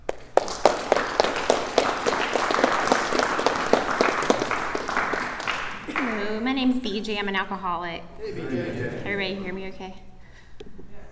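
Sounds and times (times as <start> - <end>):
audience applause: 0.0 - 6.4
laughter: 5.6 - 6.4, 8.2 - 10.0
speech: 6.9 - 10.1.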